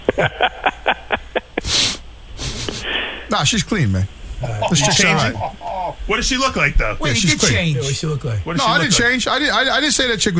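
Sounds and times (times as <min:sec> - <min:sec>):
hissing breath of air: 0:00.0 - 0:03.3
laughter: 0:00.0 - 0:03.8, 0:04.4 - 0:06.3
speech: 0:00.2 - 0:00.6, 0:03.3 - 0:10.3
nasal sniffs: 0:01.4 - 0:03.3.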